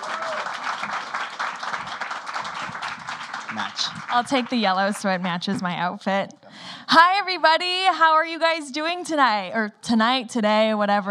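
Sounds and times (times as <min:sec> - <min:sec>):
audience applause: 0:00.0 - 0:05.1
speech: 0:03.5 - 0:11.0.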